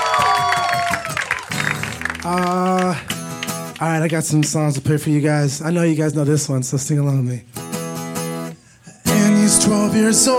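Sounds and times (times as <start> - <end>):
whoops and cheering voices: 0.0 - 1.6
round of applause: 0.0 - 4.9
speech: 2.3 - 3.1, 3.8 - 7.6, 9.7 - 10.3.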